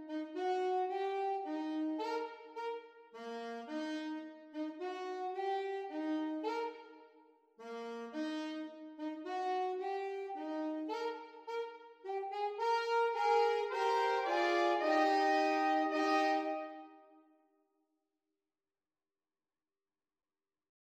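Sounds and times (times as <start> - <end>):
saxophone duet: 0.0 - 7.0, 7.6 - 17.1.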